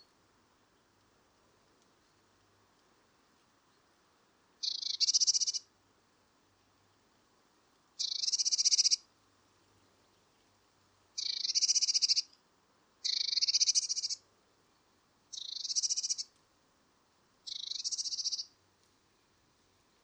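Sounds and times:
Eurasian blue tit churring call: 4.6 - 5.7, 8.0 - 9.0, 11.2 - 12.3, 13.0 - 14.2, 15.3 - 16.3, 17.5 - 18.5.

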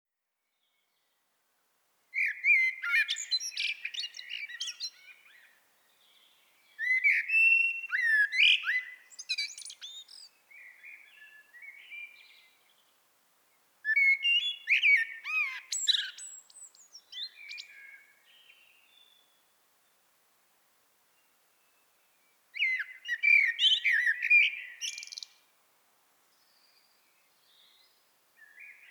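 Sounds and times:
common blackbird singing whistles and twitters: 2.2 - 12.6, 13.9 - 19.2, 22.6 - 25.4.

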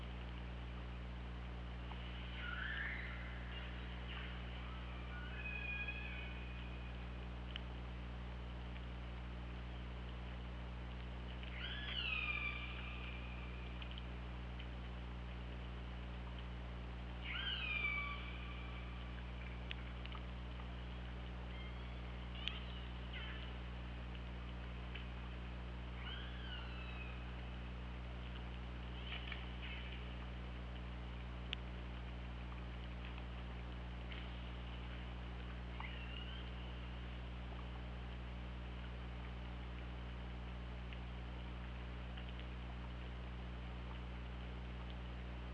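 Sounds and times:
faint clicks: 0.0 - 0.6, 7.4 - 16.6, 18.2 - 45.5
steady low underwater hum: 0.0 - 45.5
killer whale pulsed calls: 11.5 - 13.3, 17.2 - 18.9, 26.0 - 27.2, 35.8 - 36.6.

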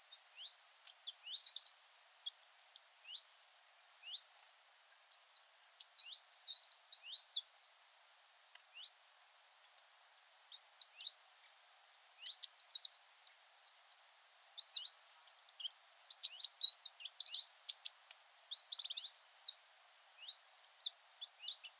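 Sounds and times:
Eurasian wren twittering song: 0.0 - 3.3, 5.1 - 8.0, 10.2 - 19.6, 20.2 - 21.7.

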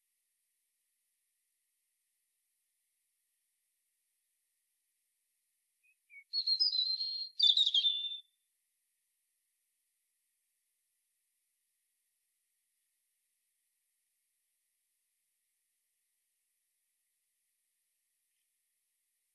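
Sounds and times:
European robin Erithacus rubecula singing: 5.8 - 8.3.

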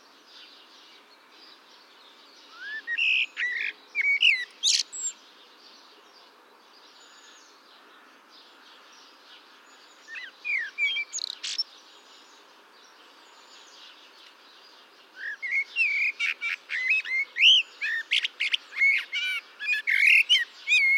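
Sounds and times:
Eurasian blackbird singing warbled mellow phrases: 0.3 - 20.9.

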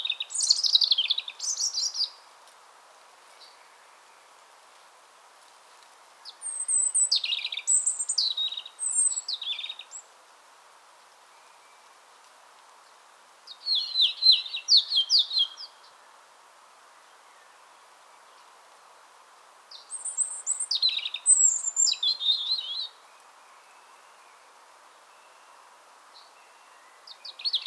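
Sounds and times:
European robin singing: 0.0 - 2.3, 6.2 - 10.1, 13.5 - 16.0, 19.7 - 27.6.

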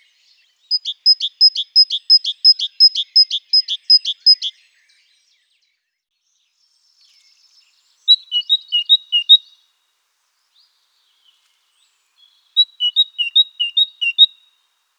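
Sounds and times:
great tit calling: 0.7 - 4.5, 8.1 - 9.5, 12.6 - 14.3.

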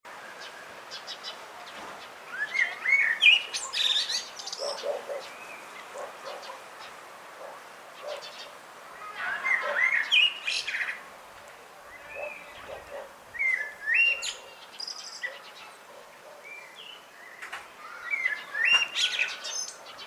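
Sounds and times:
other small birds chirping: 0.1 - 20.0
common blackbird singing: 0.3 - 11.0, 11.9 - 20.0.

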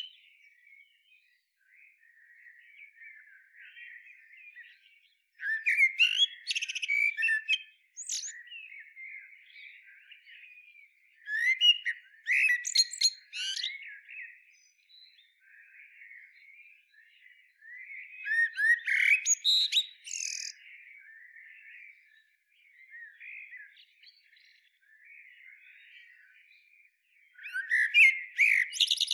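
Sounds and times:
common blackbird song, Turdus merula: 0.0 - 29.1.

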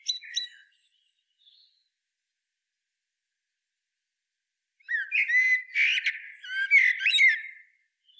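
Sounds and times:
Common blackbird Turdus merula singing: 0.0 - 1.7, 4.8 - 8.1.

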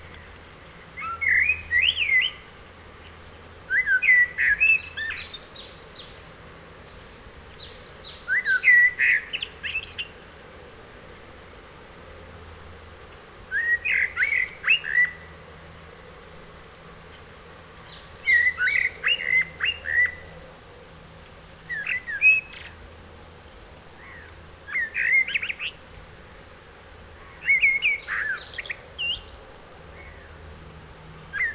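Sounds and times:
low steady hum: 0.0 - 31.5
Eurasian blackbird singing: 1.0 - 2.5, 3.7 - 10.2, 13.5 - 15.3, 17.8 - 20.3, 21.7 - 23.0, 24.0 - 25.8, 27.2 - 30.3, 31.3 - 31.5.

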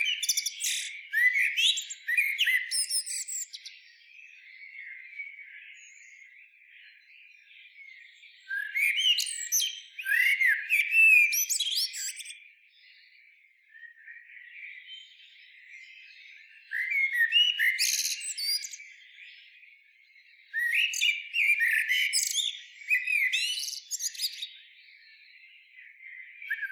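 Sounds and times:
common blackbird singing: 0.0 - 26.6.

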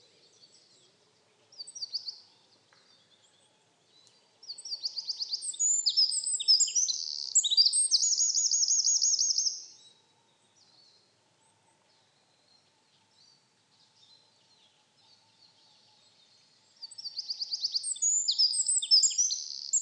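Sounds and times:
Eurasian wren Troglodytes troglodytes singing: 4.4 - 9.8, 16.8 - 19.8.

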